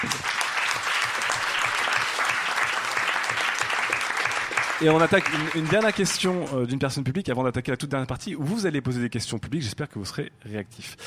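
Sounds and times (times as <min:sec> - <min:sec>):
speech: 0:00.0 - 0:00.4, 0:04.8 - 0:11.0
audience applause: 0:00.0 - 0:06.6.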